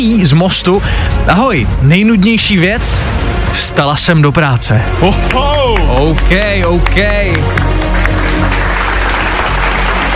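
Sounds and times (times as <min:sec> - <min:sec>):
speech: 0:00.0 - 0:07.6
group applauding: 0:05.0 - 0:10.1.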